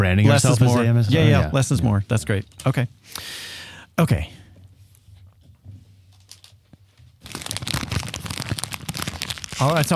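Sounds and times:
speech: 0.0 - 4.4, 9.6 - 9.9
plastic cling wrap being crinkled: 7.2 - 9.9.

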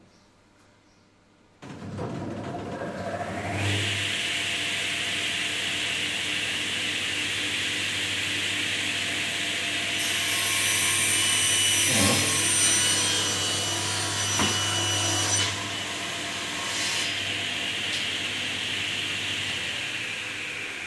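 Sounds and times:
panel saw cutting: 2.6 - 20.8.

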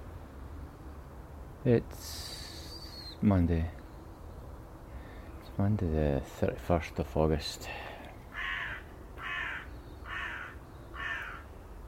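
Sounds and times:
speech: 1.6 - 2.4, 3.2 - 3.8, 5.6 - 7.9
crow cawing: 8.3 - 11.5.

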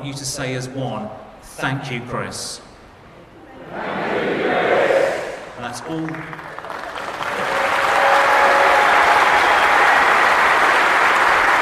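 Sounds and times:
speech: 0.0 - 2.7, 3.7 - 4.7, 5.6 - 6.6
audience applause: 5.9 - 11.6.

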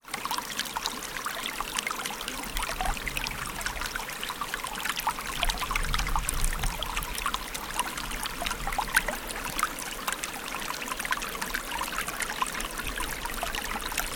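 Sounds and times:
water flowing in the River Shannon: 0.0 - 14.1.

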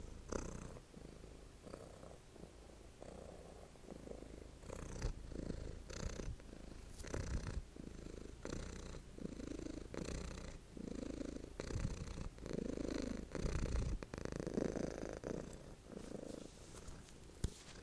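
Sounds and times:
cat purring: 0.0 - 17.8.

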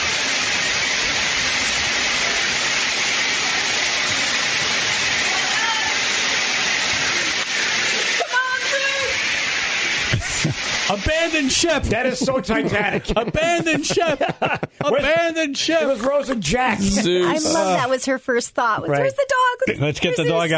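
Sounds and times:
forceful spray of pressurized water: 0.0 - 14.6
laughter: 10.0 - 17.9, 19.6 - 20.5
speech: 11.1 - 20.5.

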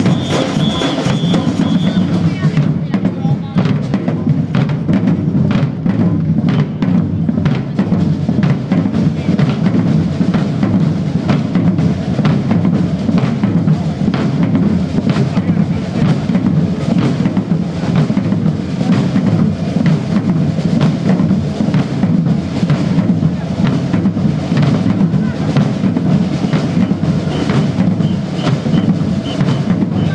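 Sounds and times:
drummers playing in Edinburgh: 0.0 - 30.1.

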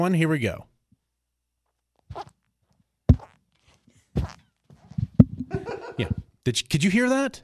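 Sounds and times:
speech: 0.0 - 0.7, 2.1 - 2.4, 5.6 - 7.4
shoes squeaking with each step: 2.0 - 2.5, 3.1 - 5.2
laughter: 5.5 - 6.3.

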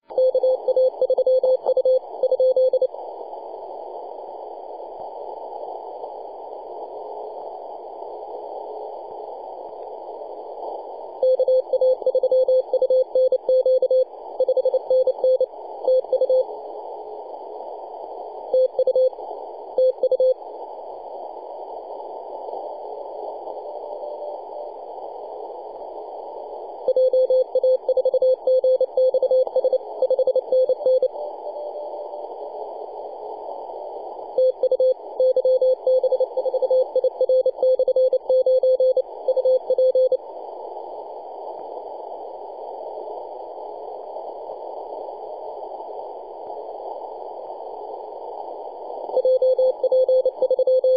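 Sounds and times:
CW Morse code beeps: 0.2 - 2.9, 11.2 - 16.4, 18.6 - 19.2, 26.9 - 32.2, 34.4 - 40.2, 49.2 - 50.9.

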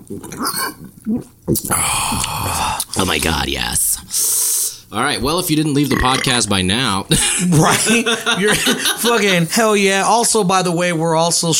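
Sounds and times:
gulping beer from bottles: 0.0 - 3.4, 5.3 - 6.6
speech: 0.1 - 11.5
laughter: 7.1 - 9.5.

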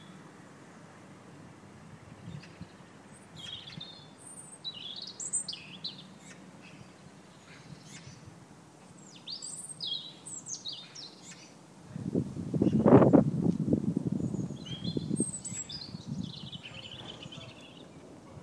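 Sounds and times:
birdsong in Redland: 2.0 - 11.6, 12.6 - 13.2, 14.1 - 18.4.

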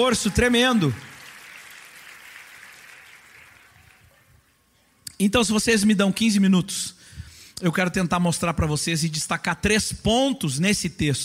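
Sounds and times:
speech: 0.0 - 1.1, 5.2 - 11.2
audience applause: 0.0 - 4.2.

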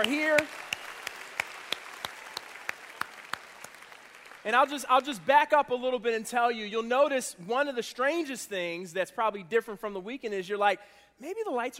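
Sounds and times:
speech: 0.0 - 0.7, 4.4 - 11.7
audience applause: 0.0 - 5.1.

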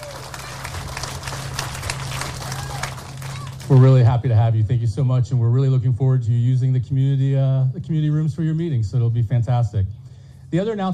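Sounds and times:
group of people applauding: 0.0 - 4.1
low hum: 0.0 - 10.9
speech: 3.7 - 10.9.

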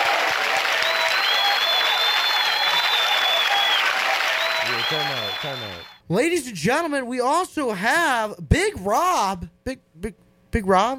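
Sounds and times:
round of applause: 0.0 - 6.0
speech: 4.9 - 10.9.

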